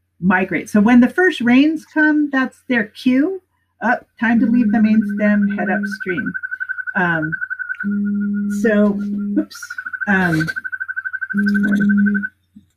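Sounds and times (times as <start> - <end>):
speech: 0.2 - 10.7, 11.3 - 12.3
Yosemite toad call: 4.2 - 12.3.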